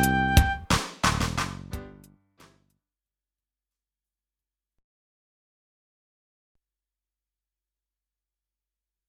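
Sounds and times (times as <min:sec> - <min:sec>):
recorder practice: 0:00.0 - 0:00.8.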